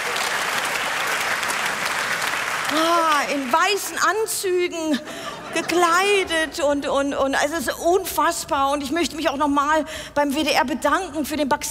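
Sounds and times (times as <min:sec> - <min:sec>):
audience applause: 0:00.0 - 0:04.0
speech: 0:02.7 - 0:11.6
laughter: 0:04.8 - 0:07.1.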